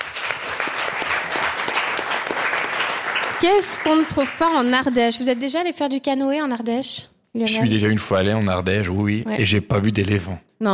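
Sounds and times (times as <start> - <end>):
studio audience applauding: 0.0 - 5.7
speech: 3.4 - 10.7.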